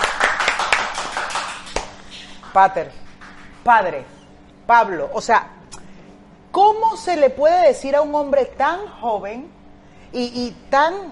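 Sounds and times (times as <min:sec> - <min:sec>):
applause: 0:00.0 - 0:02.6
speech: 0:02.6 - 0:03.0, 0:03.6 - 0:05.6, 0:06.5 - 0:11.0.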